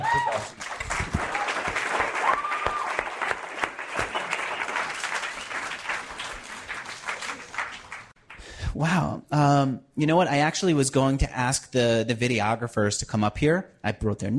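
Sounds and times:
audience applause: 0:00.0 - 0:08.4
speech: 0:09.7 - 0:14.3.

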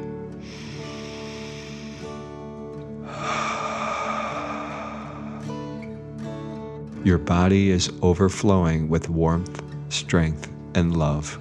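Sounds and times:
deep breath in and out: 0:00.4 - 0:06.6
speech: 0:07.0 - 0:11.3.

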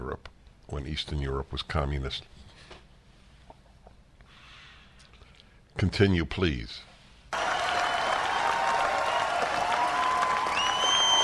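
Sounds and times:
speech: 0:00.7 - 0:02.4, 0:05.8 - 0:06.9
audience applause: 0:07.3 - 0:11.2
high whistles and cheers: 0:07.4 - 0:11.2.

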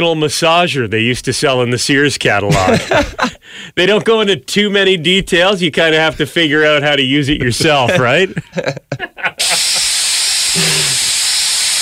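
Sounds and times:
speech: 0:00.0 - 0:09.9, 0:10.6 - 0:11.2
laughter: 0:02.5 - 0:03.4, 0:07.4 - 0:09.9
spray bottle spraying: 0:09.4 - 0:11.7.

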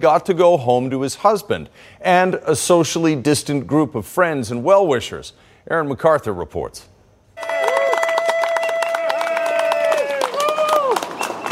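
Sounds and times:
speech: 0:00.0 - 0:07.5
crowd cheering a healthcare worker: 0:07.4 - 0:11.4.

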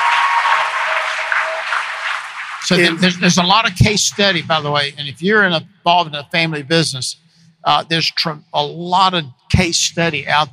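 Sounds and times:
hands clapping: 0:00.0 - 0:05.6
laughter: 0:02.6 - 0:07.0
speech: 0:02.7 - 0:10.5.

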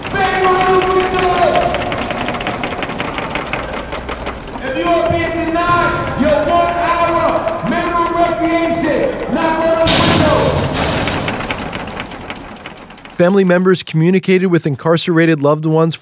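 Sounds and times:
crowd outside shouting and chanting: 0:00.0 - 0:11.2
inmates banging on detention facility windows: 0:00.0 - 0:13.4
speech: 0:13.2 - 0:15.9.

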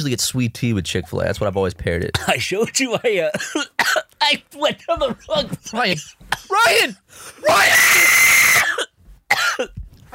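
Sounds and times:
speech: 0:00.0 - 0:09.8
coughing after water down wrong pipe: 0:02.1 - 0:02.6, 0:03.2 - 0:07.5, 0:08.5 - 0:10.1.

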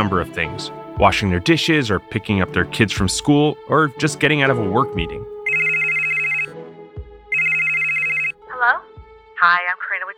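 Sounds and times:
speech: 0:00.0 - 0:05.4
telephone ringing with electronic trill: 0:05.5 - 0:06.5, 0:07.3 - 0:08.3.

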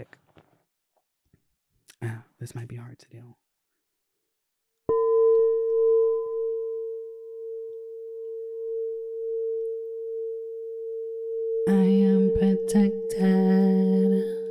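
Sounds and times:
speech: 0:02.0 - 0:03.4, 0:12.7 - 0:13.0
singing bowl ringing: 0:04.9 - 0:14.4.

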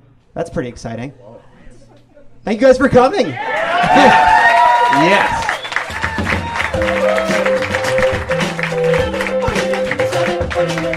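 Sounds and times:
speech: 0:00.4 - 0:01.5, 0:02.4 - 0:05.4
studio audience applause: 0:03.4 - 0:10.9.

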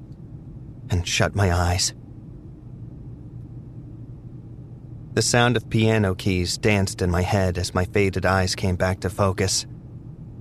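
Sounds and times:
dull rumbling of a vehicle engine: 0:00.0 - 0:10.3
speech: 0:00.9 - 0:02.0, 0:05.2 - 0:09.8.

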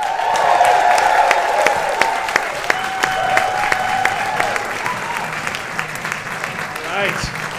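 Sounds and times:
scattered whoops and cheers: 0:00.0 - 0:05.6
audience applause: 0:00.0 - 0:07.5.

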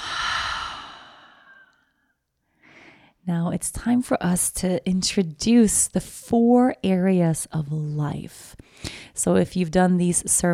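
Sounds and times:
long slow exhale during a New Year's intention-setting ceremony: 0:00.0 - 0:01.7
speech: 0:03.2 - 0:10.5.

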